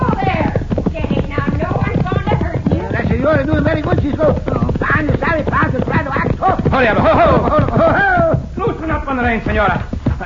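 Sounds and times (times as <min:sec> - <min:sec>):
horse hooves clattering as a horse lunges and rears while plowing: 0:00.0 - 0:10.2
overlapping voices: 0:00.0 - 0:10.2
laughter: 0:06.5 - 0:08.9, 0:10.1 - 0:10.2
speech: 0:09.3 - 0:09.9.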